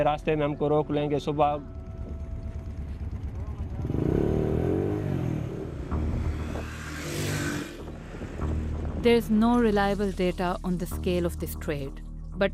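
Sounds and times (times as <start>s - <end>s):
speech: 0.0s - 1.8s, 9.0s - 12.5s
motorcycle engine droning, ridden at night near the border with Pakistan's Sindh province: 0.0s - 9.0s.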